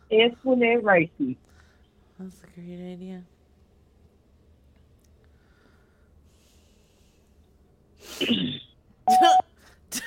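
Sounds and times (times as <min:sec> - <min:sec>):
speech: 0:00.1 - 0:01.5, 0:02.2 - 0:03.4, 0:08.0 - 0:10.0
throat clearing in a voicemail message: 0:08.2 - 0:09.4.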